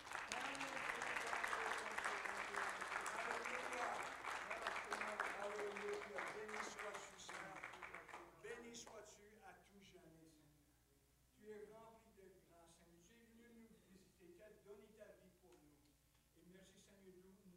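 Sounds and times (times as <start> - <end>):
audience applauding: 0.0 - 8.3.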